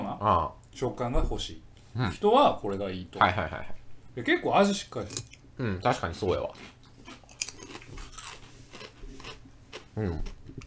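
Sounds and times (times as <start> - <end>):
speech: 0.2 - 6.8, 10.0 - 10.6
someone chewing potato chips: 6.5 - 10.6.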